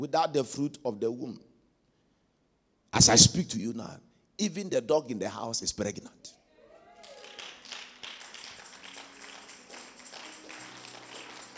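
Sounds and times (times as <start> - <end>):
speech: 0.0 - 1.5, 2.9 - 6.4
audience clapping: 6.8 - 11.5.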